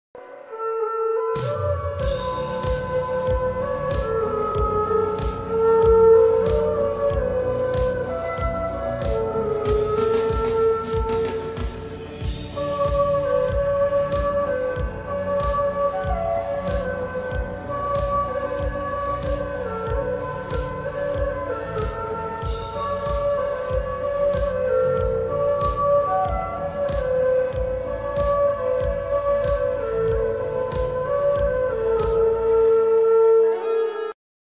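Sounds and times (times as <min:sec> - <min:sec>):
flute ringtone: 0:00.5 - 0:34.2.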